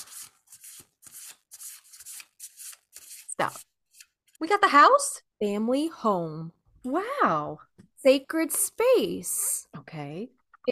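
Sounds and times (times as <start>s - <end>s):
deck of cards shuffled for a card pull: 0.0s - 4.2s
speech: 3.4s - 3.7s, 4.4s - 10.7s.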